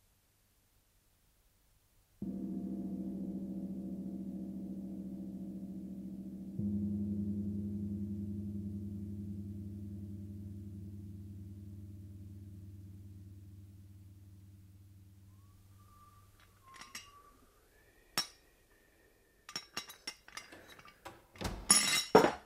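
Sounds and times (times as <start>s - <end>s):
low droning hum: 2.2s - 18.0s
coffee pot and cups clinking: 16.6s - 17.2s, 18.2s - 18.4s, 19.5s - 21.0s, 21.7s - 22.4s.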